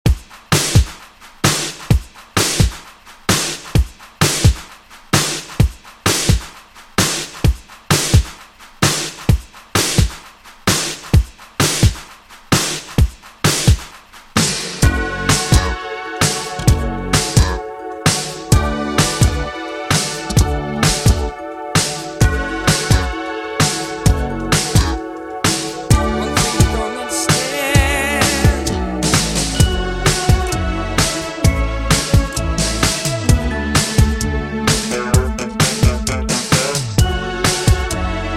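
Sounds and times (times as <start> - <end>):
80s style beat: 0.0 - 38.3.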